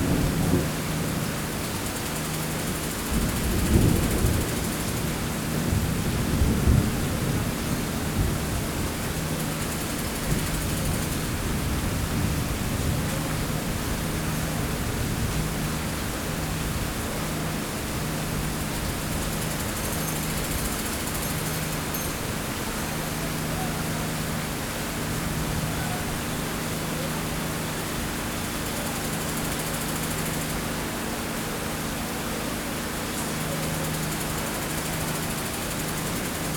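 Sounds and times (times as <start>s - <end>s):
storm in Bangladesh: 0.0s - 1.2s, 3.1s - 9.0s
engine in Bangladesh: 0.0s - 36.5s.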